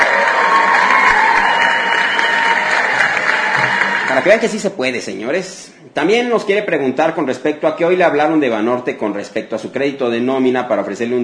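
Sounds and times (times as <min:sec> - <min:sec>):
applause: 0:00.0 - 0:04.5
speech: 0:04.1 - 0:11.2.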